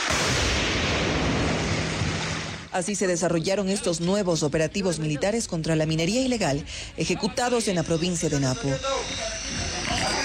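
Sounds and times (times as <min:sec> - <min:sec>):
explosions in the jungle: 0:00.0 - 0:02.8
speech: 0:02.8 - 0:09.4.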